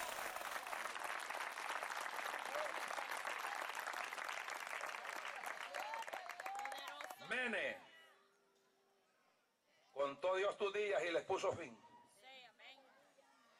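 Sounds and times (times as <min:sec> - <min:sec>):
sustained applause from a crowd: 0:00.0 - 0:07.2
speech: 0:07.3 - 0:07.9, 0:10.0 - 0:11.8.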